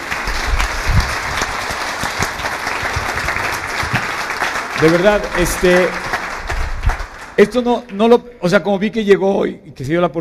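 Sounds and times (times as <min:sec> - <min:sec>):
audience applause: 0:00.0 - 0:08.0
speech: 0:04.8 - 0:06.1, 0:07.4 - 0:10.1.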